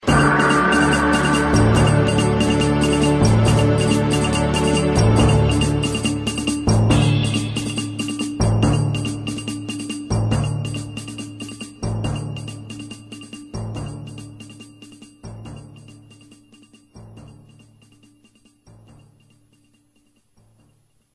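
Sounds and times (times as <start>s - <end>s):
news sounder jingle: 0.0s - 14.6s.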